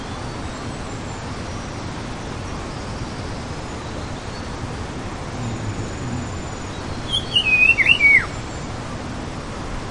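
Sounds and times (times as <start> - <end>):
low background rumble: 5.0 - 7.1
Sikkim wedge-billed babbler warbled whistle: 7.1 - 8.3.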